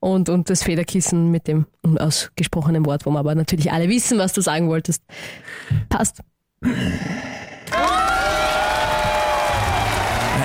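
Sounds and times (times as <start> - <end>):
speech: 0.0 - 7.8
applause: 7.7 - 10.4.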